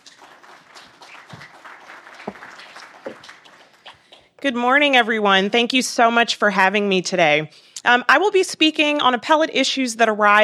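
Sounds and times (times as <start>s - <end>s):
faint seminar audience applause welcoming a speaker: 0.0s - 4.2s
speech: 4.4s - 10.4s.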